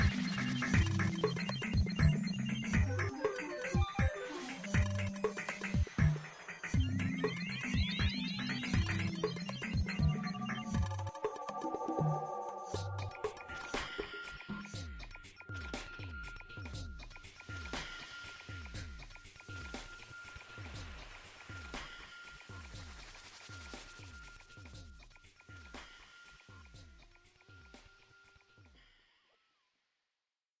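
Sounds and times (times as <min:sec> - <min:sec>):
MSN connecting ringtone: 0:00.0 - 0:14.6.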